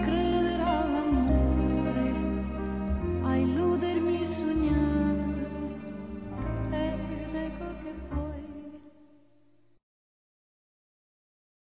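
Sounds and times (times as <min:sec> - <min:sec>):
woman singing: 0:00.0 - 0:09.2.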